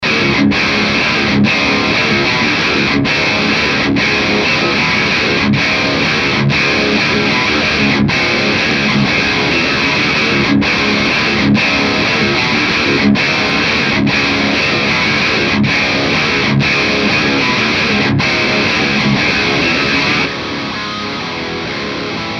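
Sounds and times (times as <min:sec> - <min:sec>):
guitar: 0:00.0 - 0:22.3.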